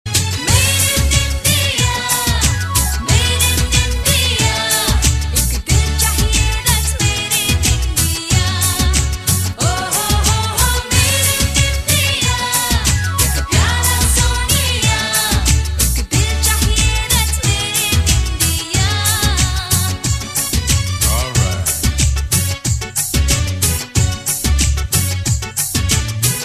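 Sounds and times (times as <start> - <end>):
Indian music: 0.1 - 26.4.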